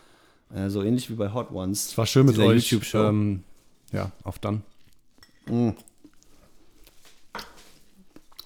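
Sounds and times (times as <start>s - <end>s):
speech: 0.5s - 4.7s, 5.5s - 5.9s
person biting and chewing spicy fried egg: 5.9s - 8.4s.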